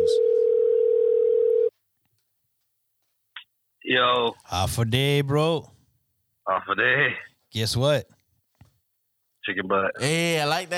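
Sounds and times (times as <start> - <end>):
phone call ringing tone: 0.0 - 1.7
speech: 3.9 - 5.7, 6.4 - 8.1, 9.5 - 10.7.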